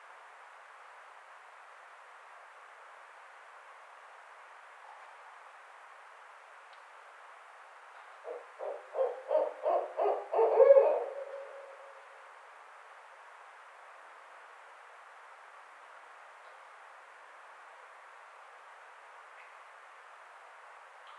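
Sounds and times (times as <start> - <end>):
barred owl hooting: 8.2 - 12.1.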